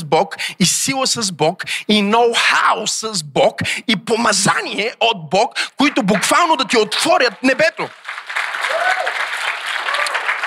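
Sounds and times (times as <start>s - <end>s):
speech: 0.1s - 8.1s
audience applause: 5.9s - 10.4s.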